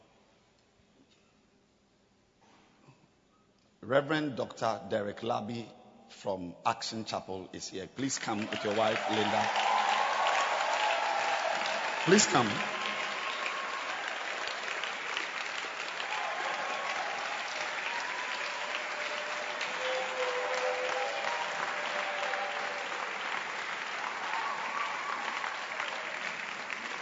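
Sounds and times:
speech: 3.9s - 9.7s, 12.0s - 12.8s
audience clapping at a church gathering: 8.0s - 27.0s.

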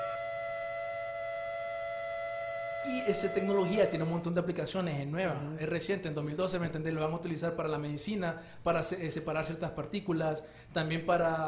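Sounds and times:
acoustic levitation frequency tone: 0.0s - 4.6s
speech: 2.8s - 11.4s.

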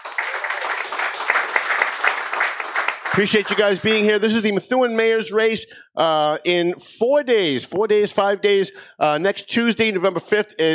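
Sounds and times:
studio audience applause: 0.0s - 4.0s
speech: 3.2s - 10.7s.

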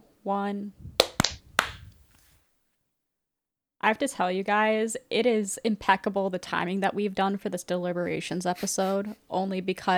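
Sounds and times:
speech: 0.2s - 0.9s, 3.8s - 9.9s
sharp hand claps for audio sync: 1.0s - 2.0s.

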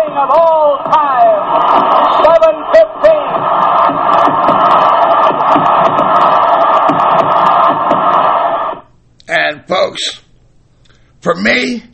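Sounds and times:
stadium crowd cheering: 0.0s - 8.9s
speech: 0.2s - 1.1s, 10.0s - 10.2s, 11.2s - 11.9s.

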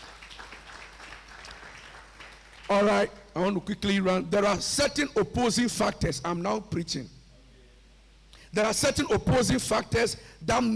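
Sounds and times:
church congregation clapping hands: 0.0s - 3.1s
speech: 2.7s - 7.2s, 8.5s - 10.7s.

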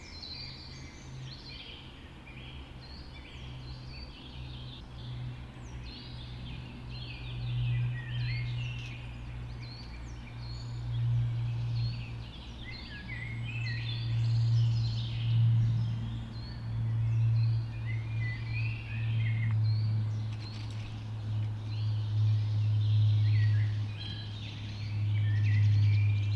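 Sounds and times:
birds singing in a dawn chorus: 0.0s - 26.3s
low droning hum: 0.0s - 26.3s.

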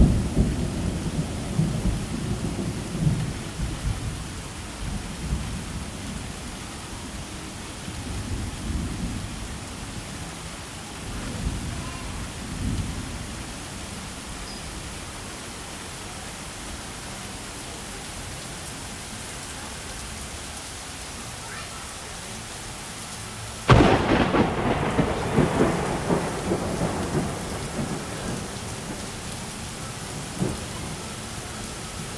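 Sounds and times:
thunder rumbling and thunderclap: 0.0s - 4.2s, 23.7s - 29.1s, 30.1s - 31.0s
summer rain at Fort Wilderness: 0.0s - 32.1s.

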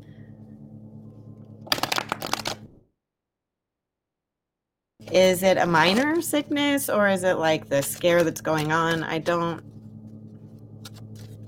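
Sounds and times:
low steady hum: 0.0s - 2.8s, 5.0s - 11.4s
deck of cards riffle-shuffled: 1.6s - 2.7s, 5.8s - 6.4s, 7.7s - 9.0s, 10.8s - 11.4s
speech: 5.1s - 9.7s.

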